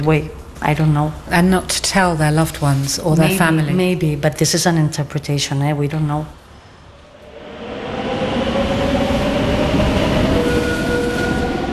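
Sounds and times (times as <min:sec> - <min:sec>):
speech: 0:00.0 - 0:06.4
train rumbling along the rails: 0:06.9 - 0:11.7.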